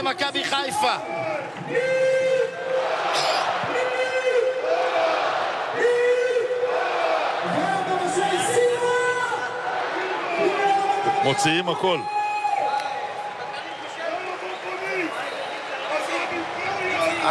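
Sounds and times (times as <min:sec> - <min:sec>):
speech: 0:00.0 - 0:02.0, 0:11.2 - 0:12.2
large stadium crowd roaring and chanting: 0:00.0 - 0:17.2.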